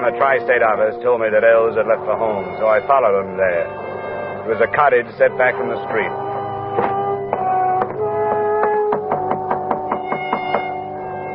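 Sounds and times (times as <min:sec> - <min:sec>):
speech: 0:00.0 - 0:03.9, 0:04.5 - 0:06.2
steady humming tonal background: 0:00.0 - 0:11.3
knocking on a door: 0:06.8 - 0:10.8.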